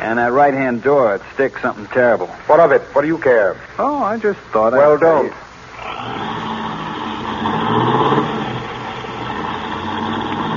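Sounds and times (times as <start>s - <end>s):
speech: 0.0s - 6.2s
car driving off in a hurry: 5.8s - 10.5s.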